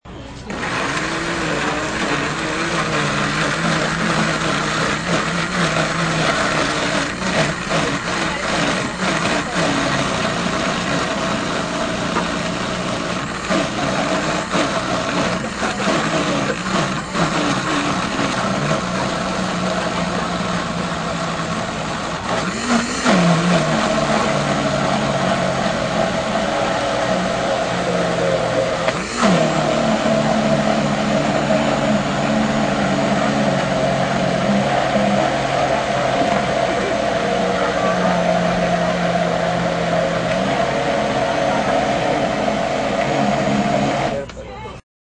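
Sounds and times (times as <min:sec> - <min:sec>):
blender running: 0:00.0 - 0:44.3.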